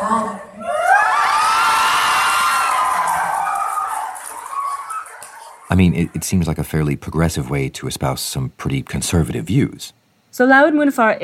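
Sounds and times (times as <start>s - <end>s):
crowd cheering and applauding: 0.6s - 6.6s
speech: 5.8s - 11.2s.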